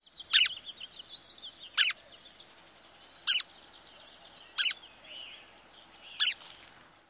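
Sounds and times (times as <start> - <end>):
calls: 0.3 - 0.7, 1.7 - 2.3, 3.2 - 4.9, 6.2 - 6.5.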